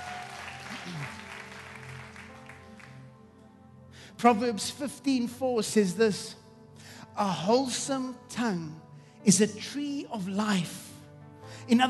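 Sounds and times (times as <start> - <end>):
audience applause: 0.0 - 3.1
speech: 0.9 - 1.2, 4.2 - 6.4, 7.2 - 10.9, 11.5 - 11.8.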